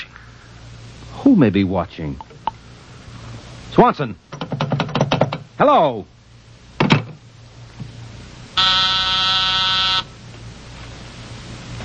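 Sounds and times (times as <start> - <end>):
speech: 1.3 - 2.3, 3.7 - 4.6, 5.6 - 6.1
office intercom buzzer: 8.5 - 10.1.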